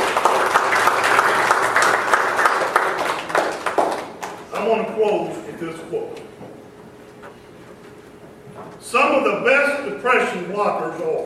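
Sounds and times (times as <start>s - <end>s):
audience applause: 0.0s - 4.4s
speech: 8.9s - 11.2s.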